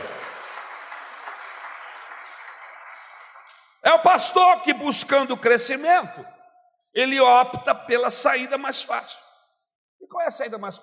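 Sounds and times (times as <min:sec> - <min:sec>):
audience applause: 0:00.0 - 0:03.8
speech: 0:03.9 - 0:09.2, 0:10.1 - 0:10.8.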